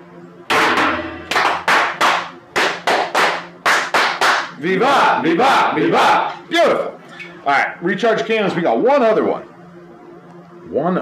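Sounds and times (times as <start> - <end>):
group clapping in unison as a ritual toast fire: 1.3 - 4.6
speech: 4.6 - 9.5, 10.7 - 11.0.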